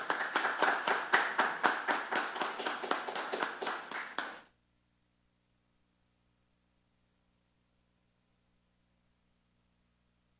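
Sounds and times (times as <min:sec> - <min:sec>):
audience applause: 0:00.0 - 0:04.5.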